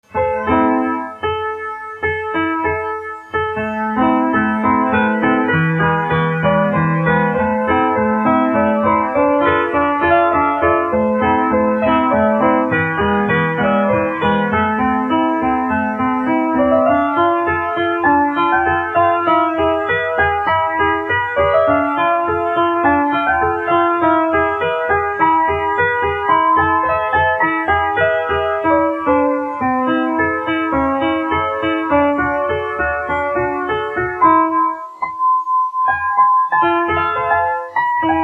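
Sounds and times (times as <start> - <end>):
piano: 0.0 - 38.2.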